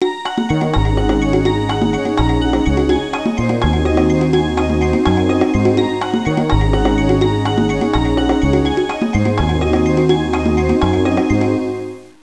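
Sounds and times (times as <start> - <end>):
contemporary ringtone: 0.1 - 12.0.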